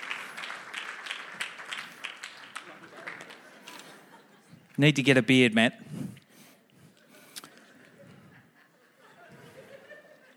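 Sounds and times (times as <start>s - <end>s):
audience applause: 0.0s - 3.8s
laughter: 2.4s - 4.8s, 7.0s - 10.3s
speech: 4.8s - 6.0s.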